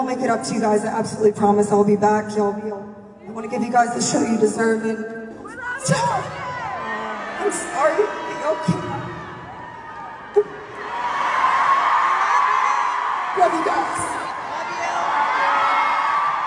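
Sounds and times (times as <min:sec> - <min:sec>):
speech: 0:00.0 - 0:05.2, 0:05.8 - 0:06.4, 0:07.5 - 0:09.1, 0:10.3 - 0:10.5
concert crowd cheering: 0:05.5 - 0:16.4.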